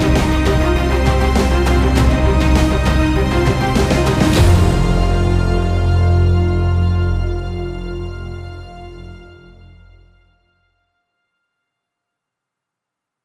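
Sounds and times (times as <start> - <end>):
string ensemble: 0.0 - 10.3.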